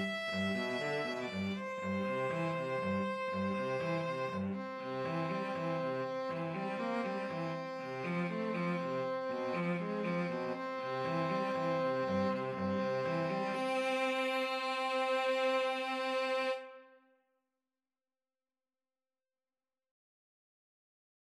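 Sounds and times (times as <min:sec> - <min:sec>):
violin and cello duet: 0:00.0 - 0:16.9.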